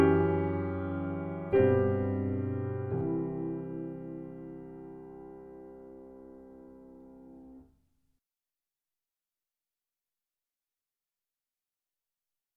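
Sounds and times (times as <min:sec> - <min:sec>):
choral music: 0:00.0 - 0:07.6.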